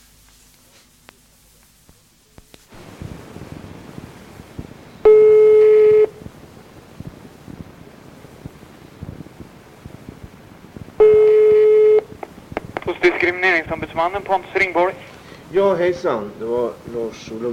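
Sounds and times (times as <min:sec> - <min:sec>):
telephone ringing tone before a call: 0:05.0 - 0:06.2, 0:11.0 - 0:12.1
speech: 0:13.4 - 0:17.5.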